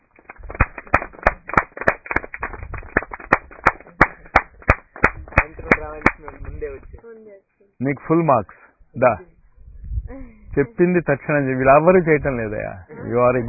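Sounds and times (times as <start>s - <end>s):
group of people clapping hands in a steady rhythmic beat: 0.0s - 6.8s
speech: 5.9s - 9.3s, 10.1s - 13.4s.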